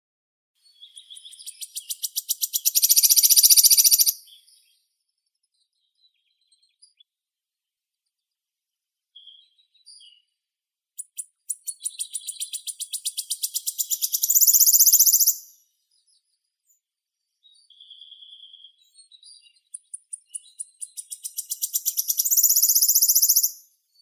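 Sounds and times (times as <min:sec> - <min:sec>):
Phylloscopus sibilatrix wood warbler singing: 0:00.7 - 0:04.8, 0:11.0 - 0:16.2, 0:17.4 - 0:23.9.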